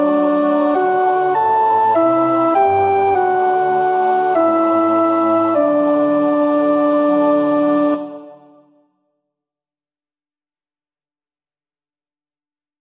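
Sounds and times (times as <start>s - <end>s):
tenor singing a Genevan psalm: 0.0s - 8.7s.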